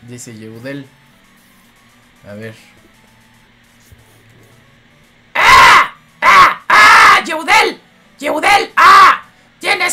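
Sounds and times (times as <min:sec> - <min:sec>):
speech: 0:00.1 - 0:01.1, 0:02.2 - 0:02.8, 0:07.2 - 0:09.1
voice imitating a crow cawing: 0:05.4 - 0:07.3, 0:08.7 - 0:09.3.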